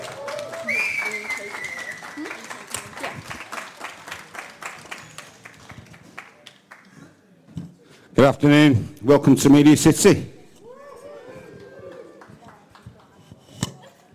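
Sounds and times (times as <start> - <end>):
audience applause for a performer at a live Halloween special show at MediaCity: 0.0 - 6.9, 11.1 - 13.2
speech: 8.2 - 10.4.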